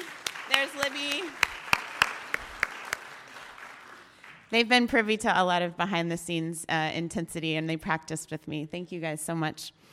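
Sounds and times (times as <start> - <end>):
sparse hand claps for internship committee members: 0.0 - 4.4
speech: 0.7 - 1.5, 4.5 - 9.9.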